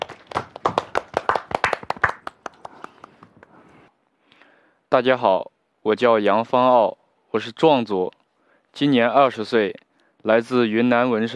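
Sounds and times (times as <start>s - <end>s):
audience applause welcoming a young dance student: 0.0s - 3.4s
speech: 4.9s - 11.3s.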